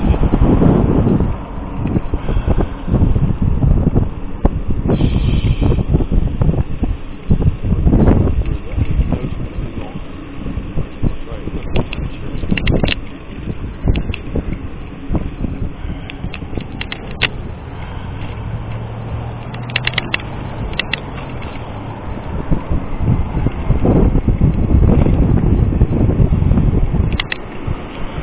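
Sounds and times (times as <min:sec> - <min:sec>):
low engine hum: 0:00.0 - 0:28.2
wind buffeting the microphone during a bicycle ride: 0:00.0 - 0:28.2
bicycle clicks and rattles: 0:11.6 - 0:14.3, 0:16.0 - 0:17.4, 0:18.2 - 0:21.8, 0:27.1 - 0:28.0.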